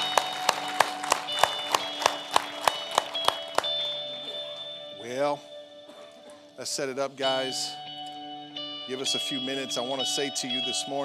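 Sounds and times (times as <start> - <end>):
audience clapping in unison: 0.0 - 5.0
speech: 5.1 - 5.5, 6.6 - 7.8, 8.9 - 11.0.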